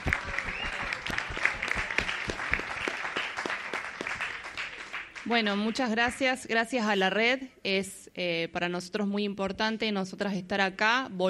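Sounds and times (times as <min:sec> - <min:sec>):
audience applause: 0:00.0 - 0:05.3
speech: 0:05.3 - 0:11.2.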